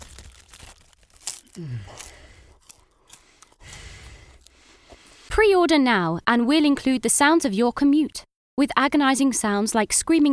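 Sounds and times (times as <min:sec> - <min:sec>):
crisp packet crinkling: 0:00.0 - 0:05.2
someone eating crisps: 0:00.0 - 0:05.2
speech: 0:01.6 - 0:02.2, 0:05.4 - 0:10.3.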